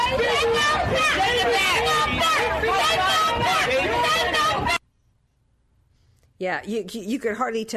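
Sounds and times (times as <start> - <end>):
crowd of protesters screaming and chanting: 0.0 - 4.8
speech: 0.1 - 3.6, 6.4 - 7.7.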